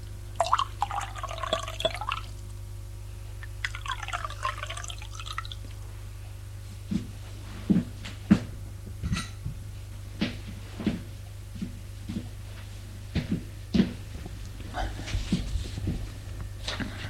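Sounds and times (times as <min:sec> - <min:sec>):
low steady hum: 0:00.0 - 0:17.0
liquid poured into two glasses: 0:00.4 - 0:02.4, 0:03.4 - 0:05.6.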